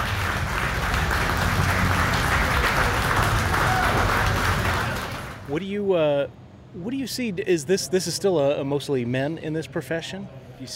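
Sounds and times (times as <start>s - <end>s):
large audience applauding contestants: 0.0s - 5.5s
speech: 5.6s - 10.7s.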